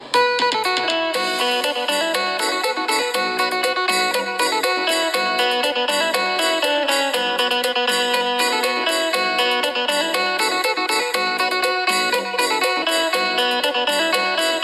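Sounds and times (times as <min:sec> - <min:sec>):
Thai flute music: 0:00.0 - 0:14.6.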